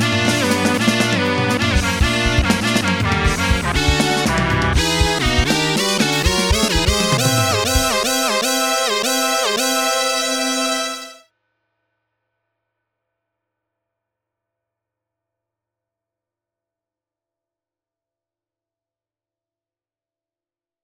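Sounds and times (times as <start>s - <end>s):
Synclavier V synthesizer: 0.2s - 11.2s.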